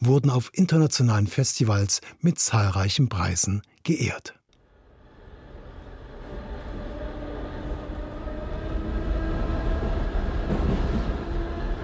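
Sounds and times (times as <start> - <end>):
speech: 0.0 - 4.4
S-Bahn commuter train carriage in motion: 5.0 - 11.8.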